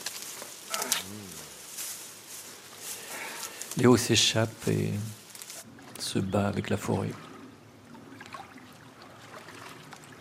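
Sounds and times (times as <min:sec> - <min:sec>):
speech: 0:03.8 - 0:05.2, 0:06.1 - 0:07.3
stream water trickling and babbling: 0:04.7 - 0:10.1
light splashes of someone getting into a stream: 0:05.6 - 0:10.1.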